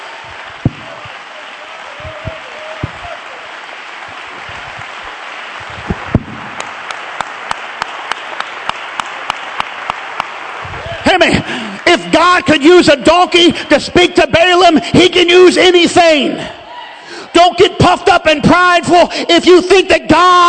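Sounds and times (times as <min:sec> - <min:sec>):
audience clapping hands: 0:00.0 - 0:13.6
speech: 0:11.2 - 0:16.6, 0:17.4 - 0:20.4.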